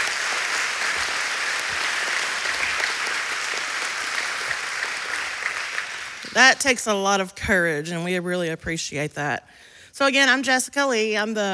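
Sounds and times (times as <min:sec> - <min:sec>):
audience applause: 0:00.0 - 0:06.6
speech: 0:06.4 - 0:11.5.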